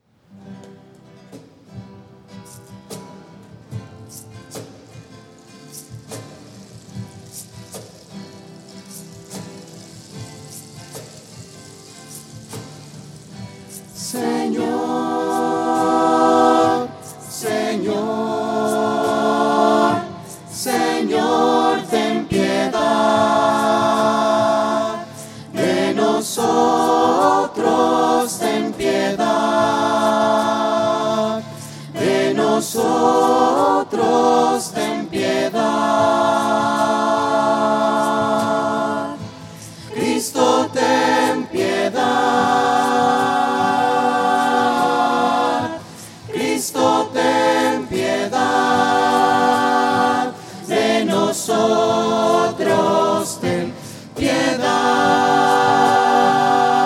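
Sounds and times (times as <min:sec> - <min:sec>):
voices singing at a wedding: 0:13.7 - 0:56.8.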